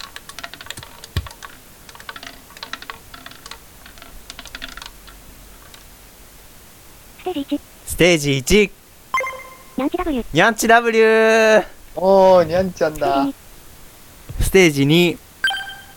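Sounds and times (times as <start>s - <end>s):
computer keyboard typing: 0.0s - 5.8s
speech: 7.3s - 8.8s, 9.8s - 13.4s, 14.5s - 15.2s.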